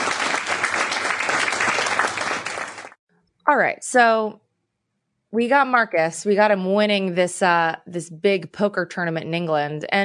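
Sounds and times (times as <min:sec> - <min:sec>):
round of applause: 0:00.0 - 0:03.0
speech: 0:03.5 - 0:04.4, 0:05.3 - 0:10.0.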